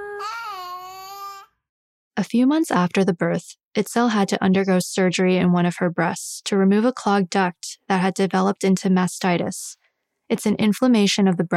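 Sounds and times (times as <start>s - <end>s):
baby fussing: 0.0s - 1.5s
speech: 2.2s - 11.5s.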